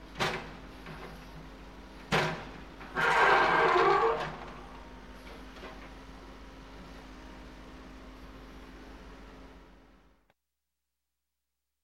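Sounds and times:
backhoe scraping at a construction site: 2.8s - 5.4s
backhoe banging at a construction site: 2.9s - 4.6s.

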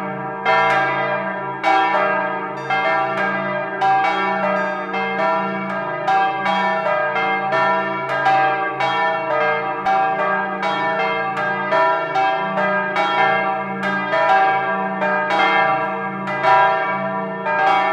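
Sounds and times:
church bells: 0.0s - 17.9s.

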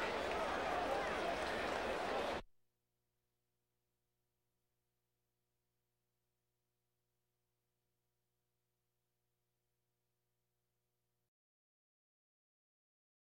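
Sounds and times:
crowds: 0.0s - 2.4s.

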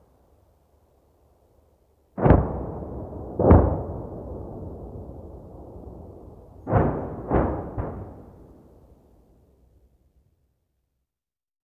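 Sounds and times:
artillery cannon firing: 2.2s - 9.0s.

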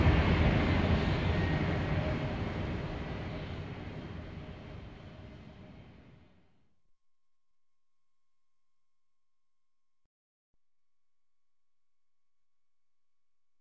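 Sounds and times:
Schiphol train platform ambience: 0.0s - 6.5s.

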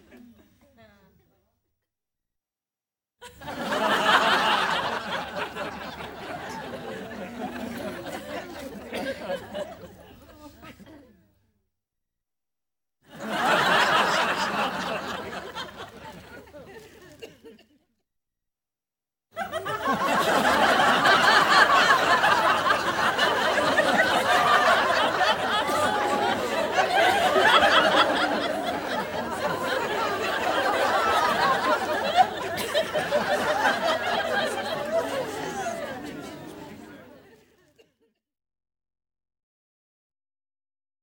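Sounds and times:
studio audience laughing: 3.2s - 10.3s, 13.1s - 17.7s, 19.4s - 37.9s.

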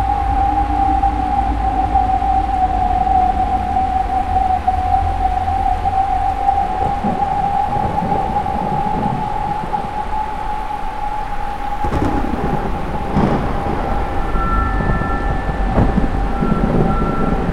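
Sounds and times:
windstorm: 0.0s - 17.5s
thunder: 6.7s - 10.6s, 11.5s - 17.5s.

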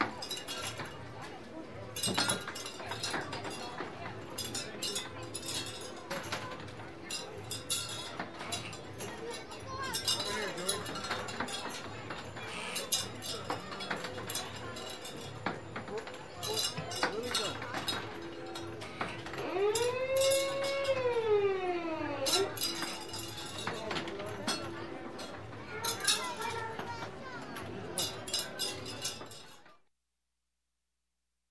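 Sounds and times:
crowd at an amusement park ring toss game: 0.0s - 29.9s.

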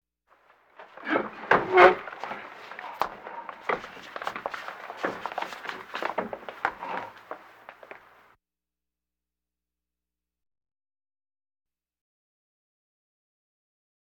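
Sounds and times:
machinery trucks moving: 0.4s - 8.2s.

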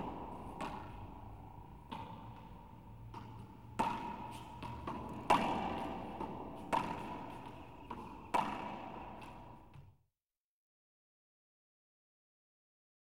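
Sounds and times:
squash court ambience: 0.0s - 9.9s.

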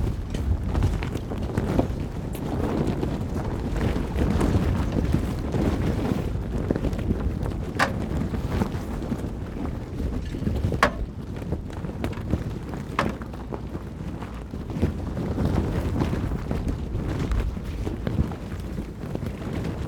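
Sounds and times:
sail being hoisted on a yacht: 0.0s - 19.8s.

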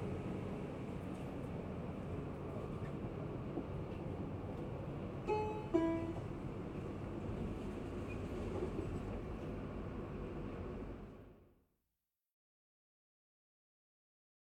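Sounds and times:
metro train arriving: 0.0s - 11.4s.

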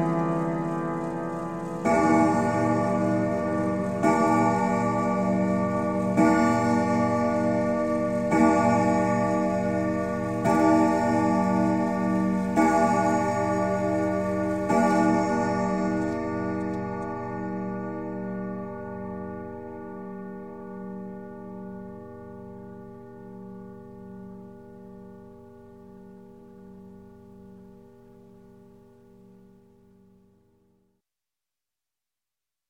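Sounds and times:
grandfather clock striking: 0.0s - 18.6s
grandfather clock chime: 0.0s - 21.8s.

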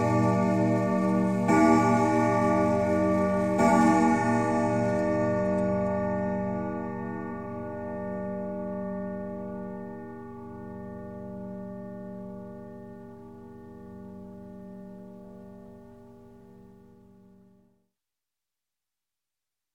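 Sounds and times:
grandfather clock striking: 0.0s - 10.1s
grandfather clock chime: 0.0s - 15.0s.

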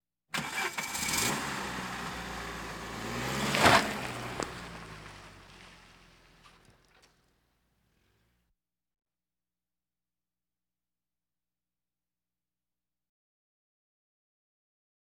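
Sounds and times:
various automobiles: 0.4s - 7.3s.

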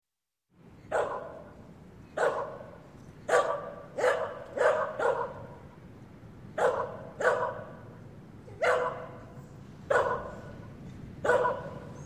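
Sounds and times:
terrier barking: 0.9s - 1.5s, 2.2s - 5.6s, 6.6s - 7.8s, 8.5s - 10.6s, 11.2s - 12.0s.

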